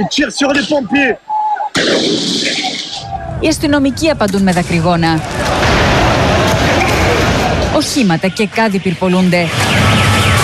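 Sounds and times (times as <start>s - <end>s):
speech: 0.0s - 5.6s, 7.8s - 9.8s
people shouting: 5.2s - 7.8s.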